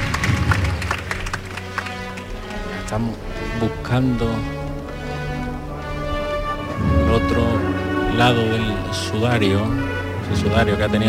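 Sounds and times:
spectators applauding at a Holy Week procession as the paso is lowered: 0.0s - 3.1s
low steady drone: 0.0s - 11.0s
speech: 2.9s - 4.6s, 7.2s - 11.0s.

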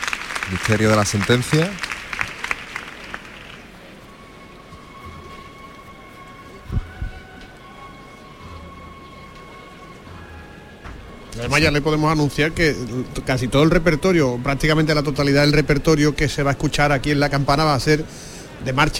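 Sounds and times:
crowd applauding a procession float: 0.0s - 4.0s
speech: 0.5s - 1.9s, 11.4s - 18.9s.

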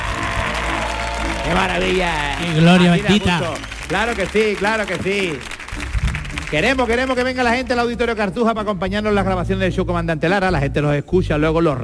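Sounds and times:
audience cheering and applauding at a live show at the Auditorio Cartuja: 0.0s - 7.7s
man shouting excited exclamations: 0.7s - 3.4s
speech: 1.5s - 5.9s, 6.5s - 11.8s.

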